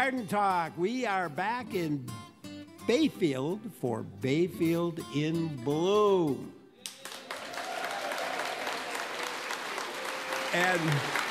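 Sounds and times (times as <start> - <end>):
speech: 0.0 - 2.3, 2.9 - 6.6, 10.5 - 11.2
live audience applauding at a garden talk event in Bayfield: 6.8 - 11.2.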